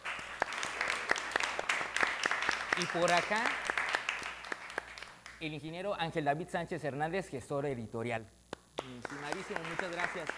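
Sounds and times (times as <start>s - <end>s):
audience applause: 0.0s - 5.4s, 8.8s - 10.3s
speech: 2.8s - 3.7s, 5.4s - 10.3s.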